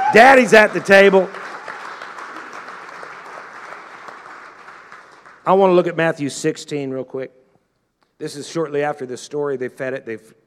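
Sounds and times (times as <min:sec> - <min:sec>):
audience clapping and shouting: 0:00.0 - 0:05.5
speech: 0:00.1 - 0:01.4, 0:05.5 - 0:07.4, 0:08.2 - 0:10.4.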